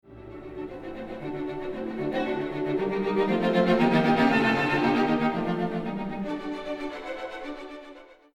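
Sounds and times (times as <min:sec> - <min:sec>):
strings: 0:00.0 - 0:08.3.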